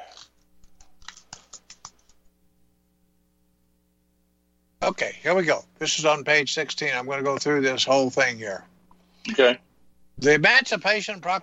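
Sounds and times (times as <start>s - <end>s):
typing on a computer keyboard: 0.1s - 2.2s
speech: 4.9s - 8.7s, 9.3s - 9.6s, 10.2s - 11.4s.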